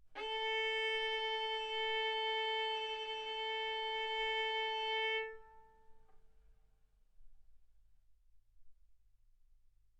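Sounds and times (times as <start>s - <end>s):
violin bowed mezzo-forte on the A string, A4 and B4: 0.2s - 6.0s.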